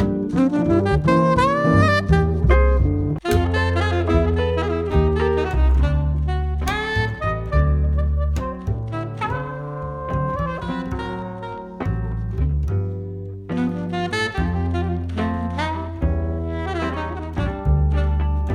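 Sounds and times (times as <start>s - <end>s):
swing music medley: 0.0s - 18.5s.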